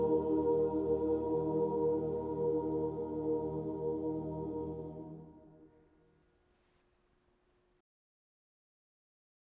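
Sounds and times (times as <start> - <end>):
mixed choir singing: 0.0 - 5.7.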